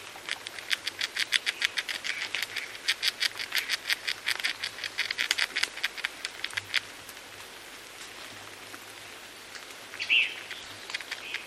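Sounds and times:
Arizona gray squirrel chattering: 0:00.0 - 0:06.9, 0:10.0 - 0:11.4.

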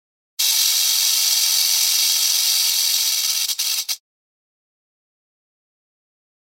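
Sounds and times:
rattlesnake rattling: 0:00.4 - 0:04.0.

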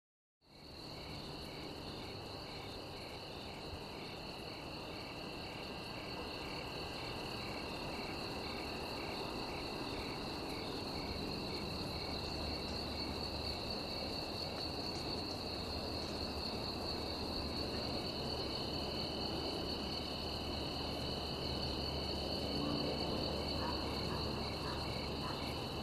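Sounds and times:
background hiss: 0:00.5 - 0:25.8
crickets chirping: 0:00.5 - 0:25.8.

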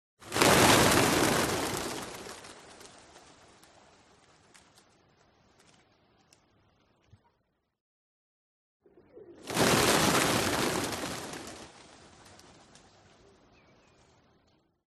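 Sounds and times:
pigeon flock wings flapping as it takes off: 0:00.2 - 0:05.9, 0:09.4 - 0:14.1.

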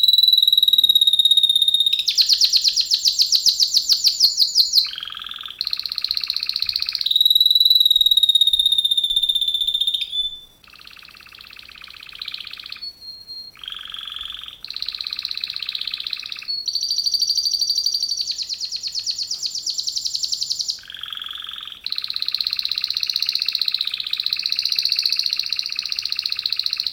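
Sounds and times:
Canary song: 0:00.0 - 0:26.9.

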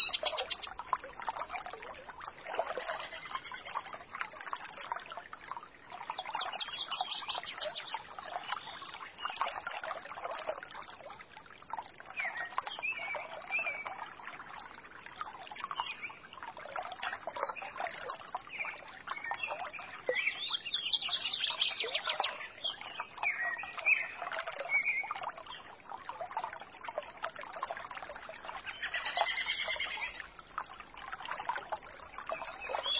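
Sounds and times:
bird song: 0:00.0 - 0:00.8, 0:02.7 - 0:04.0, 0:06.0 - 0:09.8, 0:12.2 - 0:14.0, 0:15.5 - 0:16.2, 0:17.3 - 0:25.7, 0:28.5 - 0:30.3, 0:32.2 - 0:32.9
babbling trickle of water from a small spring: 0:00.0 - 0:32.9.

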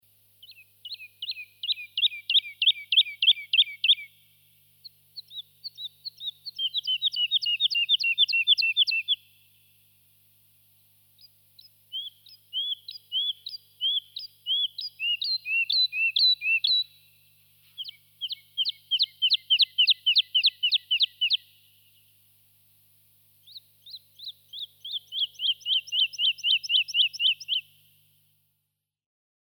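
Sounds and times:
lark singing: 0:00.4 - 0:04.2, 0:04.8 - 0:09.2, 0:11.2 - 0:17.0, 0:17.8 - 0:21.6, 0:23.4 - 0:27.7.

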